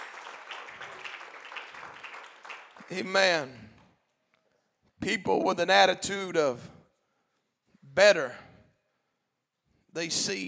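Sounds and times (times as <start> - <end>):
audience clapping hands: 0.0 - 4.0
speech: 2.9 - 3.7, 5.0 - 6.7, 8.0 - 8.4, 10.0 - 10.4.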